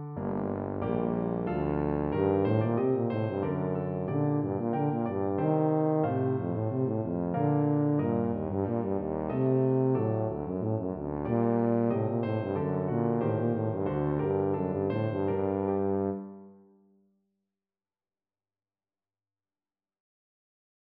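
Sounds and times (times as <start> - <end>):
tuba playing a Baroque rondeau: 0.2 - 16.5.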